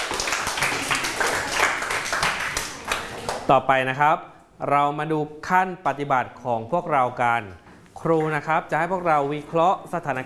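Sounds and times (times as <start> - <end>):
applause sound effect: 0.0 - 3.5
speech: 3.5 - 10.2.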